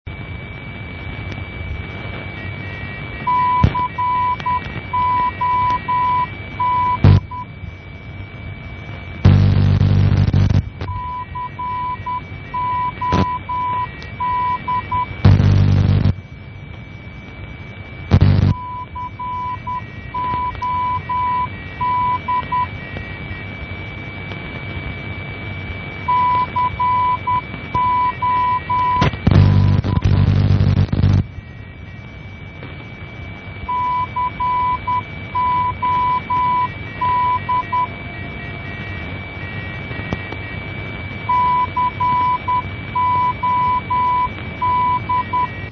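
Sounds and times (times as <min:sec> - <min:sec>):
non-directional beacon signal: 0:02.3 - 0:07.9, 0:08.8 - 0:16.2, 0:18.0 - 0:24.9, 0:25.5 - 0:45.6.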